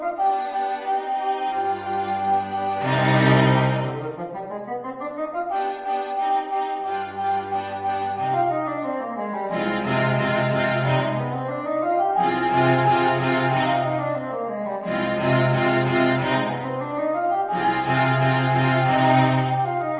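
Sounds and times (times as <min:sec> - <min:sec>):
quartet playing: 0:00.2 - 0:19.9.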